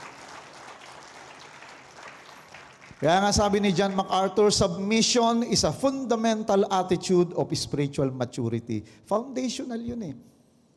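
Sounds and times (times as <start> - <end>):
audience clapping loudly: 0.0 - 4.0
speech: 3.0 - 10.4.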